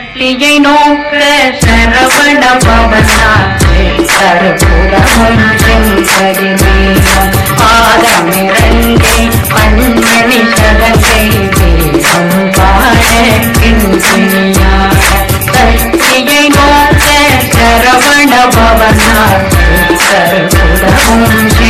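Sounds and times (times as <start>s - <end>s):
bhakti devotional remix ringtone: 0.2s - 21.6s.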